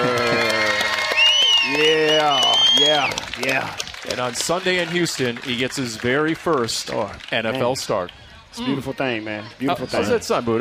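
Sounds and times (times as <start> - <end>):
crowd shouting and cheering: 0.0 - 7.0, 8.5 - 10.6
crowd applause: 0.0 - 8.1
speech: 1.8 - 10.6.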